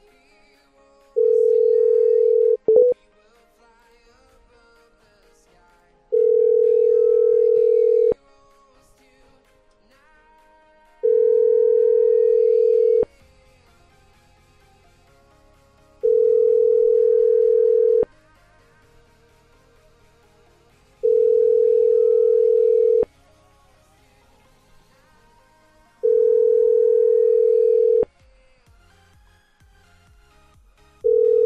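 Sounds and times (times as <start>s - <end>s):
telephone ringback tone after dialing: 1.2s - 3.0s, 6.1s - 8.2s, 11.0s - 13.1s, 16.0s - 18.1s, 21.0s - 23.1s, 26.0s - 28.1s, 31.0s - 31.4s.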